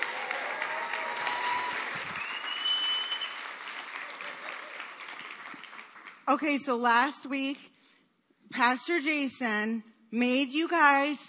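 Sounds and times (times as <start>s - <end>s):
church audience applause welcoming a speaker: 0.0s - 6.2s
speech: 6.3s - 7.7s, 8.5s - 11.2s.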